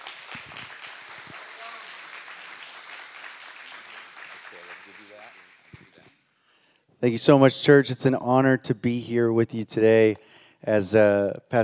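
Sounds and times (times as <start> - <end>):
audience clapping: 0.0 - 6.2
speech: 7.0 - 11.6.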